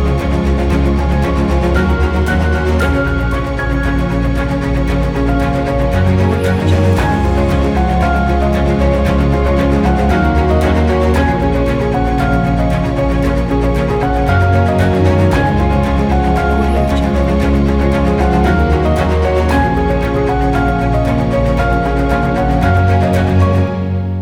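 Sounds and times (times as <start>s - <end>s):
motivational piano music: 0.0s - 24.1s.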